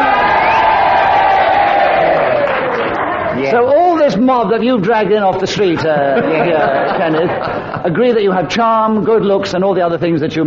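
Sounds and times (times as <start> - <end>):
studio audience cheering: 0.0 - 5.0
speech: 4.3 - 10.4
laughter: 5.3 - 8.5.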